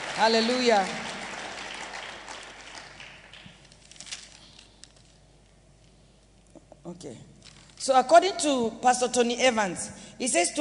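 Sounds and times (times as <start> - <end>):
audience clapping: 0.0 - 3.9
speech: 0.2 - 1.1, 6.9 - 10.6.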